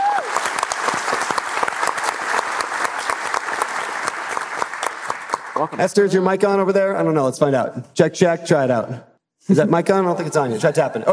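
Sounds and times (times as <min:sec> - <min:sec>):
audience applause: 0:00.0 - 0:05.8
speech: 0:05.6 - 0:11.1.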